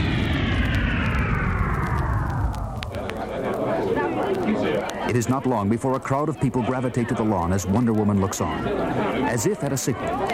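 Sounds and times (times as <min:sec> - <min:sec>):
deep continuous rumble: 0:00.0 - 0:03.8
aircraft engine roaring while landing: 0:00.0 - 0:04.3
speech: 0:05.1 - 0:10.3.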